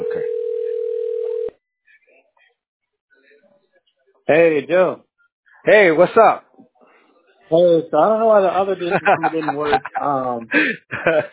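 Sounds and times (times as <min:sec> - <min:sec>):
telephone ringing on an outgoing call: 0:00.0 - 0:01.6
speech: 0:04.3 - 0:05.0, 0:05.6 - 0:06.4, 0:07.5 - 0:11.3
laughter: 0:08.5 - 0:11.3.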